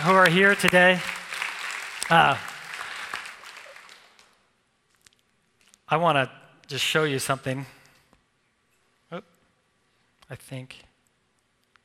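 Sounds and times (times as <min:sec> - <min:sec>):
speech: 0:00.0 - 0:01.2, 0:02.1 - 0:02.5, 0:05.9 - 0:07.8, 0:09.1 - 0:09.3, 0:10.3 - 0:10.9
audience clapping: 0:00.0 - 0:04.5.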